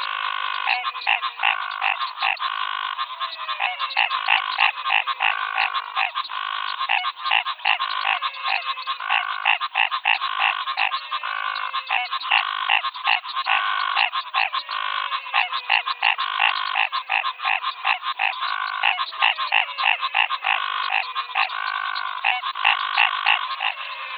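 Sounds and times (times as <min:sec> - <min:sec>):
frog chorus croaking in the Pantanal in Brazil: 0:00.0 - 0:24.1.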